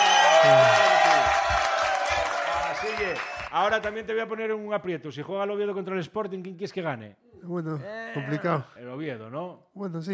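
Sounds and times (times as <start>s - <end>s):
crowd applause and cheering for a fan of Real Oviedo: 0.0s - 4.0s
speech: 0.4s - 0.8s, 3.0s - 10.1s.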